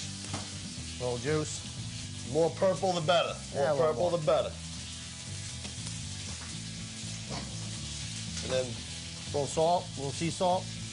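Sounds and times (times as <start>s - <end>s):
beef sizzling in a hot pan: 0.0s - 10.9s
speech: 1.0s - 4.6s, 8.5s - 10.8s.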